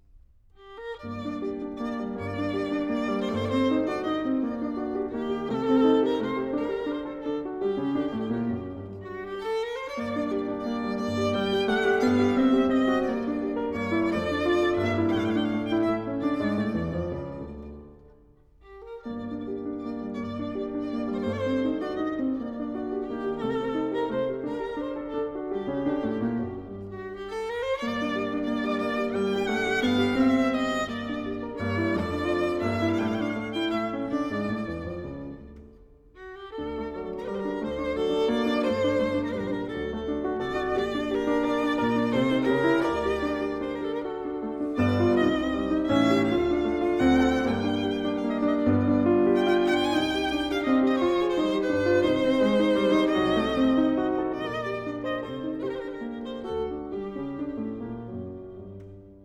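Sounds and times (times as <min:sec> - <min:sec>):
piano in G minor: 0:00.0 - 0:59.2
violin in G minor: 0:00.0 - 0:59.2.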